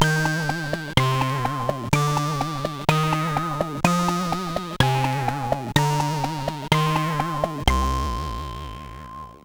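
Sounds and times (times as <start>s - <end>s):
SID CSG8580R5 chip music: 0.0s - 9.3s.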